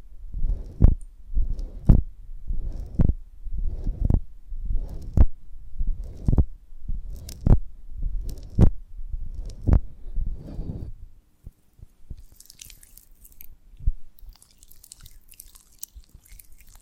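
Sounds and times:
soft low thumps handling a honeycomb on a branch: 0:00.0 - 0:12.3, 0:13.7 - 0:14.2
faint ticks and thin crackly sizzle: 0:12.1 - 0:13.6, 0:14.2 - 0:16.8.

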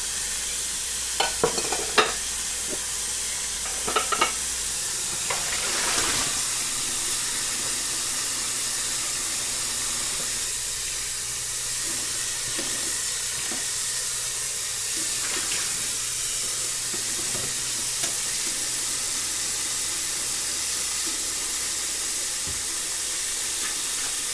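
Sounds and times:
running water while washing dishes: 0:00.0 - 0:24.3
dishes clinking and knocking: 0:01.2 - 0:02.8, 0:03.6 - 0:04.4.

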